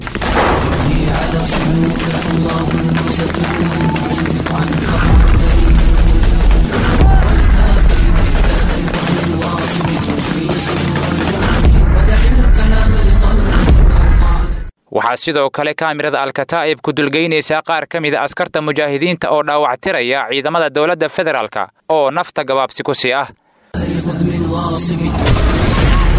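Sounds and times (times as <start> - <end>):
heavy booms: 0.0 - 3.5, 4.7 - 10.4, 11.4 - 14.5
gunfire in al-Shabaab attack footage in Middle Shabelle: 0.0 - 11.6
speech: 15.2 - 26.0.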